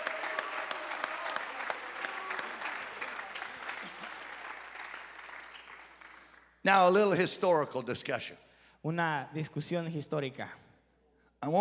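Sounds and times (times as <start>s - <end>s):
audience applauding: 0.0s - 6.6s
speech: 6.6s - 10.6s, 11.4s - 11.5s.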